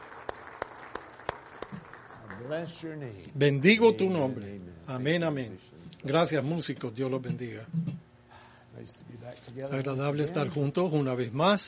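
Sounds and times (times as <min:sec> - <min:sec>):
audience applause: 0:00.0 - 0:03.0
speech: 0:02.4 - 0:07.9, 0:08.8 - 0:11.6.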